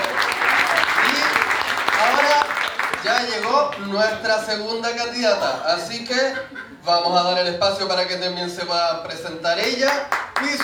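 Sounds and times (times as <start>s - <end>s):
audience applause at an evening event presenting contestants: 0.0s - 3.9s, 10.1s - 10.6s
speech: 3.3s - 10.6s
laughter: 6.1s - 7.1s.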